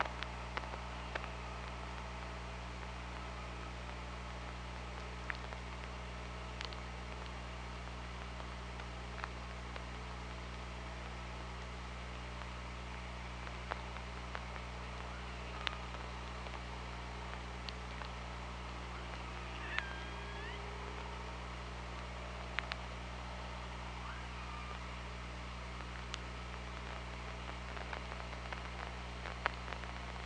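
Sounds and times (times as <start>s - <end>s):
low underwater hum: 0.0s - 30.2s
killer whale rising tonal call: 19.1s - 20.7s.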